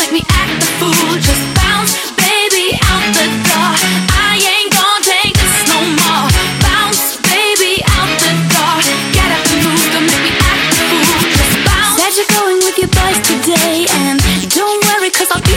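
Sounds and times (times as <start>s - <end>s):
bounce workout drum beat: 0.0s - 15.5s.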